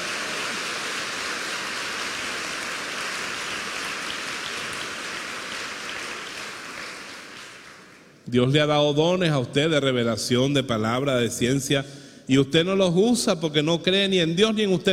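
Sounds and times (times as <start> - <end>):
audience applauding: 0.0 - 8.2
speech: 8.3 - 14.9.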